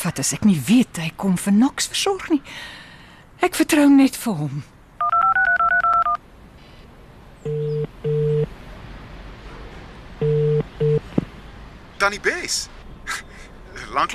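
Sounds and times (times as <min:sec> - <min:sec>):
speech: 0:00.0 - 0:02.8, 0:03.4 - 0:04.7, 0:12.0 - 0:13.3, 0:13.9 - 0:14.1
phone keypad tones: 0:05.0 - 0:06.2, 0:07.5 - 0:08.5
phone line tones: 0:05.0 - 0:06.2, 0:07.5 - 0:08.5, 0:10.2 - 0:11.0.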